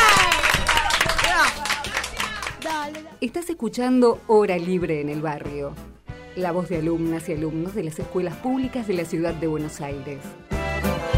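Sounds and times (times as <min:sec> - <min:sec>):
excited shouting: 0:00.0 - 0:02.9
group clapping at a school radio program: 0:00.0 - 0:03.2
speech: 0:03.2 - 0:11.1.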